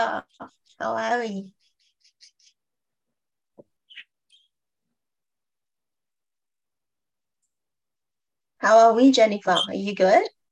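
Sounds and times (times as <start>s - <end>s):
speech: 0.0s - 1.6s, 8.6s - 10.4s
pet birds chirping: 0.0s - 4.9s, 8.6s - 10.5s.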